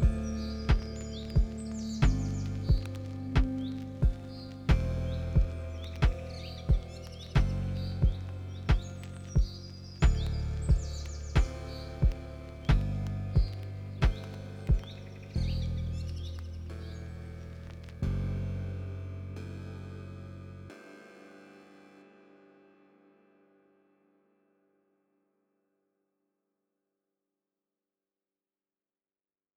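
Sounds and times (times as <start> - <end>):
ambience: 0.0 - 20.8.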